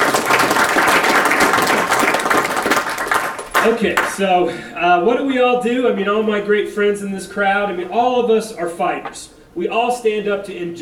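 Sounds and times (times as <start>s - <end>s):
audience applause: 0.0s - 4.2s
speech: 3.6s - 10.8s.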